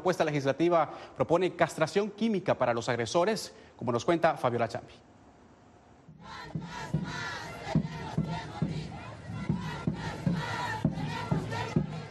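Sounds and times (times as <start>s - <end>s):
speech: 0.0s - 5.1s, 6.2s - 7.3s
crowd chanting at street march: 6.2s - 12.0s.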